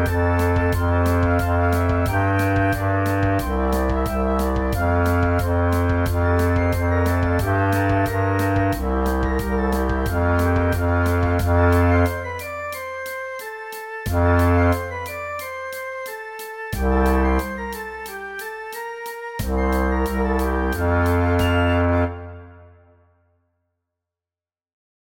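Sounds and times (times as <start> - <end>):
double bass practice track: 0.0 - 12.5, 14.1 - 15.1, 16.8 - 18.0, 19.4 - 22.5.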